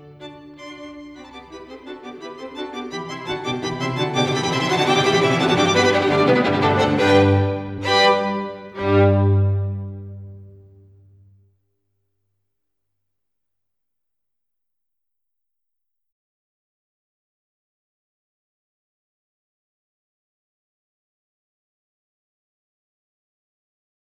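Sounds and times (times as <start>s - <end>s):
string quartet playing: 0.0s - 11.3s.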